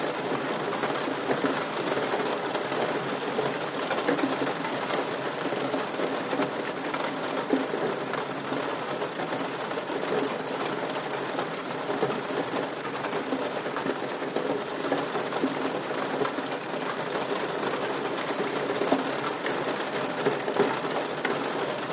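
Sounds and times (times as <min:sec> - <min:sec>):
light steady rain against a window in a loft interior: 0:00.0 - 0:21.9.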